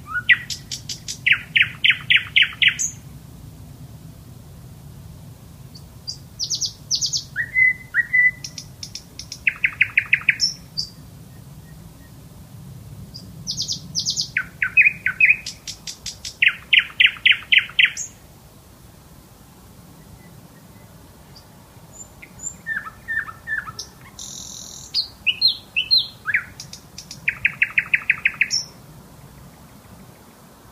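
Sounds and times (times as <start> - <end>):
nightingale singing varied phrases: 0.0 - 3.0, 5.7 - 12.2, 13.1 - 18.2, 20.0 - 29.6.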